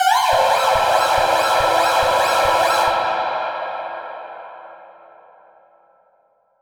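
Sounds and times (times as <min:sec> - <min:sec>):
echo-processed alarm siren: 0:00.0 - 0:05.0.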